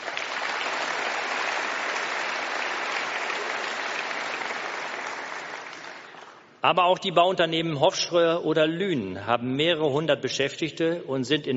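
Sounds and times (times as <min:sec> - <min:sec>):
audience applause: 0:00.0 - 0:06.4
speech: 0:06.6 - 0:11.5.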